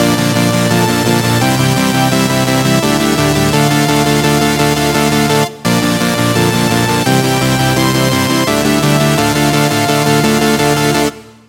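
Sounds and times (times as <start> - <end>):
musical chord: 0.0 - 11.3.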